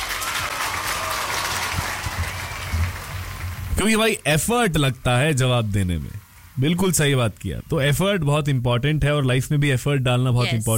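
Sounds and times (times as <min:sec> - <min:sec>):
applause for quiz listeners who answered: 0:00.0 - 0:03.8
speech: 0:03.8 - 0:10.7.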